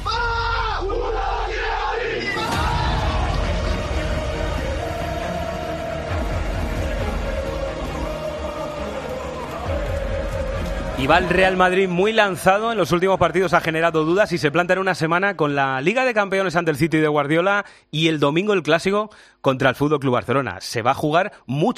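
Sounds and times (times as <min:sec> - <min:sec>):
football fans roaring with a chanted cry: 0:00.0 - 0:14.0
speech: 0:11.0 - 0:21.7.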